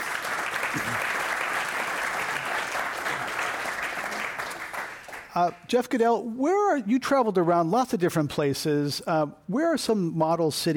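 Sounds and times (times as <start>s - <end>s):
audience applause: 0.0s - 5.4s
speech: 5.4s - 10.7s.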